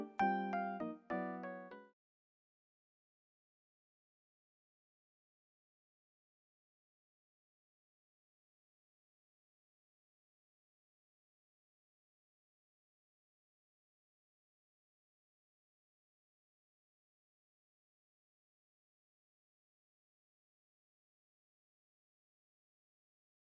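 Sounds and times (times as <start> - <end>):
instrumental riff: 0.0 - 1.9.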